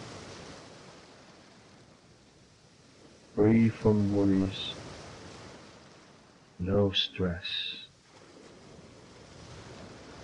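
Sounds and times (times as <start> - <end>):
waves washing at the water's edge on a beach: 0.0 - 10.2
speech: 3.4 - 4.8, 6.6 - 7.8.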